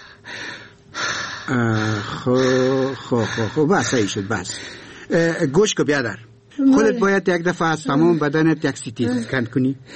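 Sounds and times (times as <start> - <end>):
patient breathing deeply during a doctor's examination: 0.0 - 5.1, 9.1 - 9.9
groaning breaths: 0.0 - 5.2
speech: 1.5 - 9.9.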